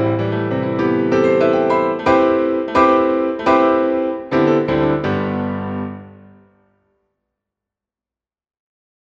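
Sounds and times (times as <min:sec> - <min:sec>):
piano waltz: 0:00.0 - 0:06.6.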